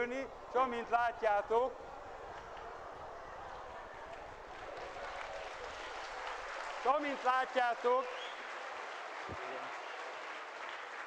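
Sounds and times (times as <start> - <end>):
speech: 0.0 - 1.9, 6.8 - 8.2, 9.3 - 9.8
audience applause after a physics demonstration shot: 3.5 - 11.0.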